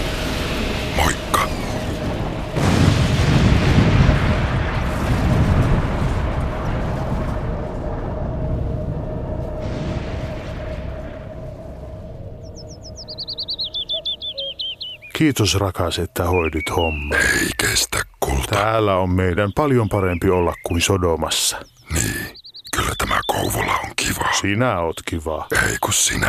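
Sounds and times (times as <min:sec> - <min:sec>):
falling meteorite rumbling roar: 0:00.0 - 0:12.9
falling meteorite whining: 0:11.5 - 0:15.1
speech: 0:15.2 - 0:22.4, 0:23.0 - 0:26.2.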